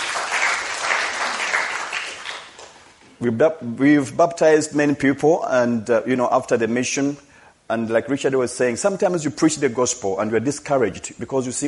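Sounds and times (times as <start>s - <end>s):
applause: 0.0s - 2.8s
speech: 3.2s - 11.6s.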